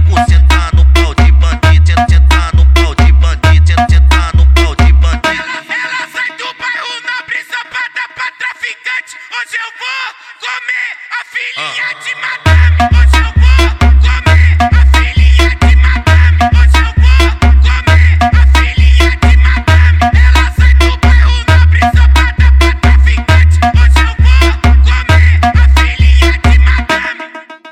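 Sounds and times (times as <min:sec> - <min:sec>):
funk music: 0:00.0 - 0:05.7, 0:12.5 - 0:27.2.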